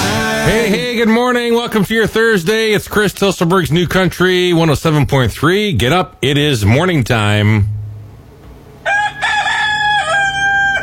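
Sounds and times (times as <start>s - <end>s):
speech: 0.5s - 7.8s
rooster crowing: 8.8s - 10.8s.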